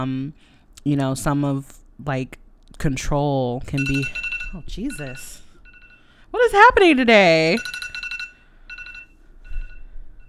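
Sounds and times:
speech: 0.0s - 5.4s, 6.3s - 7.8s
alarm going off: 3.8s - 6.7s, 7.5s - 9.8s.

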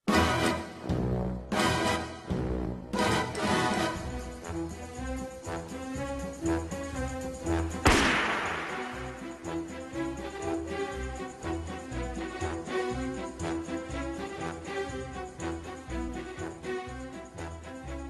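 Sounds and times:
orchestral film theme with no guitar: 0.0s - 18.0s
loud brassy stabs: 7.8s - 9.4s
sudden sharp crash-like burst: 7.8s - 9.4s.

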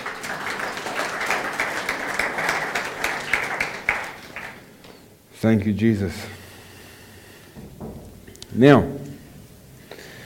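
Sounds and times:
crowd applauding: 0.0s - 4.8s
speech: 5.4s - 6.4s, 8.6s - 9.0s.

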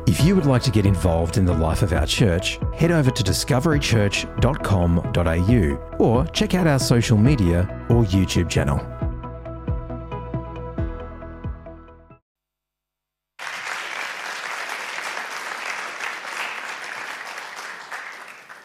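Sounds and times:
speech: 0.1s - 8.9s
audience clapping: 13.4s - 18.6s.

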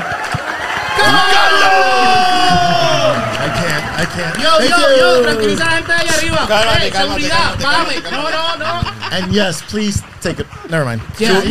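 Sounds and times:
applause: 0.0s - 6.5s
crowd cheering, whooping and shouting: 0.0s - 9.3s
laughter: 0.9s - 11.4s
speech: 1.0s - 11.4s.

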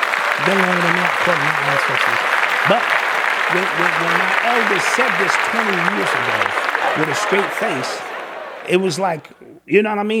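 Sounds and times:
applause sound effect: 0.0s - 9.4s
laughter: 0.0s - 9.6s
speech: 0.4s - 8.1s, 8.7s - 10.1s.

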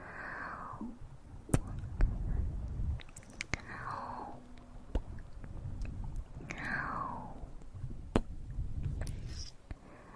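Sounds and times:
low murmuring rumble: 0.0s - 10.1s
wet mouth clicks and pops: 1.5s - 2.1s, 2.9s - 3.7s, 8.1s - 9.3s.

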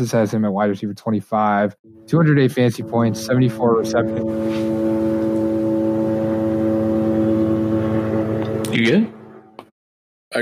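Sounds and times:
speech: 0.0s - 4.7s, 8.7s - 9.1s
airplane passing overhead with steady engine roar: 1.9s - 9.6s.

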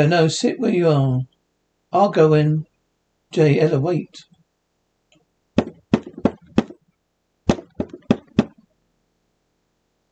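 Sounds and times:
speech: 0.0s - 1.3s, 1.9s - 2.7s, 3.3s - 4.3s
knocking on a door: 5.6s - 6.8s, 7.5s - 8.6s.

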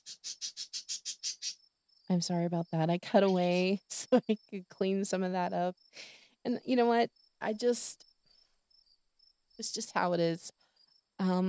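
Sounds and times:
pet birds squawking: 0.0s - 1.6s, 3.1s - 3.8s
speech: 2.1s - 8.1s, 9.6s - 10.6s, 11.2s - 11.4s.

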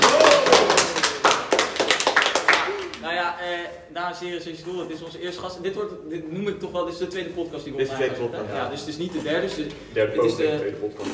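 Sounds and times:
applause welcoming a guest: 0.0s - 3.0s
speech: 3.3s - 11.1s.

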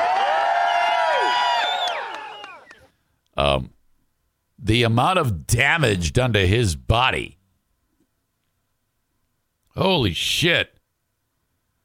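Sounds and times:
small group of people cheering and yelling: 0.0s - 2.9s
speech: 3.5s - 3.8s, 4.6s - 7.4s, 9.8s - 10.8s.

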